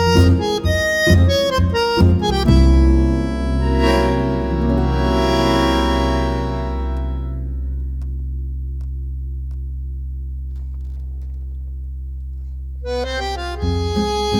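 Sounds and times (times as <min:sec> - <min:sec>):
tango vals music: 0:00.0 - 0:07.6, 0:12.9 - 0:14.3.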